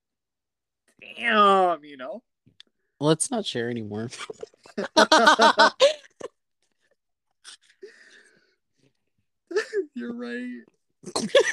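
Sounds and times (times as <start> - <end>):
speech: 1.0 - 2.3, 3.0 - 6.0, 10.0 - 11.5
faint breathing: 7.7 - 8.9
person choking and coughing on water: 11.0 - 11.5.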